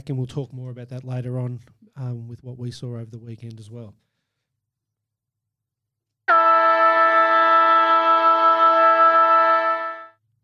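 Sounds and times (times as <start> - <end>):
speech: 0.0 - 4.1
football game siren: 6.3 - 10.1.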